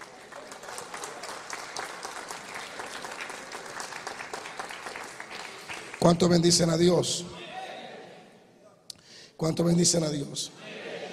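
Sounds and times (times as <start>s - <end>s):
audience applause: 0.0s - 6.2s
speech: 6.0s - 7.4s, 9.4s - 10.9s.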